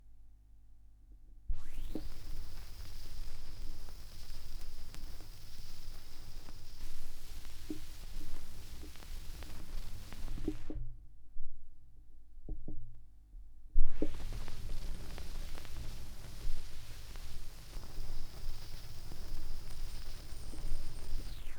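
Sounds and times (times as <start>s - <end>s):
vinyl record crackle with tape echo: 1.6s - 10.8s, 13.9s - 21.5s.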